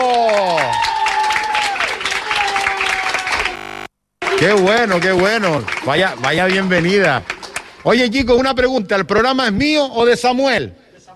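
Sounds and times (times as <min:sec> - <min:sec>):
applause: 0:00.0 - 0:08.2
speech: 0:04.4 - 0:10.8.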